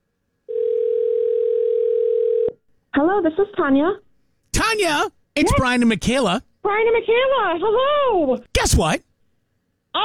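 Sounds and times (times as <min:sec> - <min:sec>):
telephone dial tone as a call connects: 0:00.5 - 0:02.5
speech: 0:03.0 - 0:09.1.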